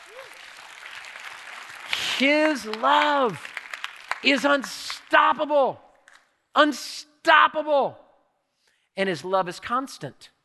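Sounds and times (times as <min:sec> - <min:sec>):
audience cheering: 0:00.0 - 0:05.0
speech: 0:00.1 - 0:00.6, 0:02.2 - 0:03.5, 0:04.2 - 0:05.8, 0:06.6 - 0:08.0, 0:09.0 - 0:10.4.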